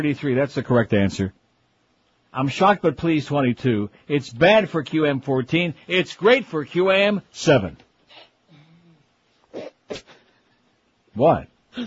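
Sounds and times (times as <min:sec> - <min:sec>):
speech: 0:00.0 - 0:01.4, 0:02.3 - 0:07.8, 0:11.2 - 0:11.8
person sneezing peculiarly: 0:08.1 - 0:10.3.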